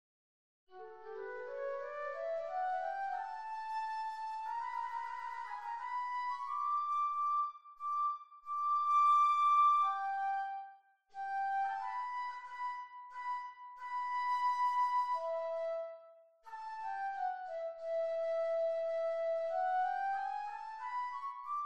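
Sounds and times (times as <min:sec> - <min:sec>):
flute playing: 0:00.8 - 0:21.6.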